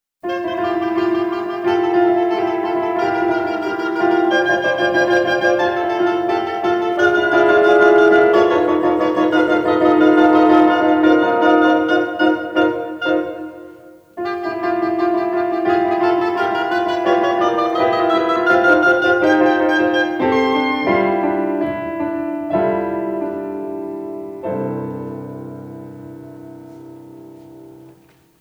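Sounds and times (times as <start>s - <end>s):
oboe: 0.2s - 23.4s
piano: 0.2s - 28.3s.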